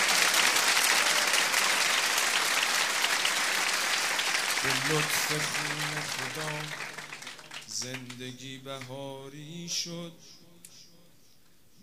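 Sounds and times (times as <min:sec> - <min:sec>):
audience clapping along during a devotional recitation praising Hussein: 0:00.0 - 0:09.0
speech: 0:04.6 - 0:06.9, 0:07.8 - 0:10.4.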